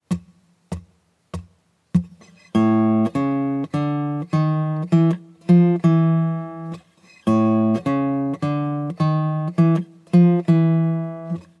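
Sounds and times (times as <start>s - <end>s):
blues guitar turnaround: 0.1s - 11.5s.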